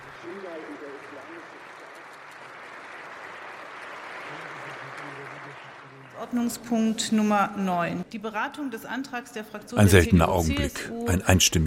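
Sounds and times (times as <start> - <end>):
applause in parliament chamber: 0.0 - 6.9
speech: 0.2 - 1.6, 6.2 - 11.6
faint voices murmuring: 9.8 - 11.6.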